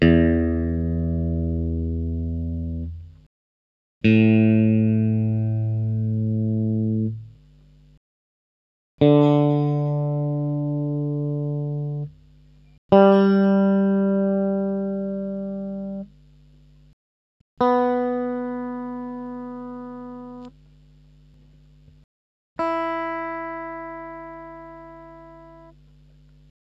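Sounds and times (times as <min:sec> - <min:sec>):
electric guitar: 0:00.0 - 0:03.0, 0:04.1 - 0:07.2, 0:09.0 - 0:12.1, 0:13.0 - 0:16.0, 0:17.6 - 0:20.5, 0:22.6 - 0:25.7.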